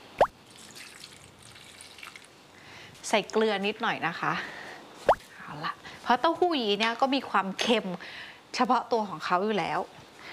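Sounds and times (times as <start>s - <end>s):
faint steady noise: 0.0s - 10.3s
splash of pickled garlic juice or sesame oil into a dish: 0.2s - 2.4s
speech: 3.1s - 4.6s, 5.5s - 10.0s.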